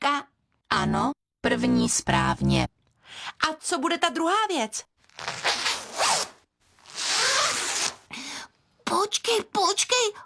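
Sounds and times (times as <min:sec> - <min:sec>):
speech: 0:00.1 - 0:05.5, 0:09.0 - 0:10.2
zipper being pulled on a jacket: 0:05.0 - 0:08.1.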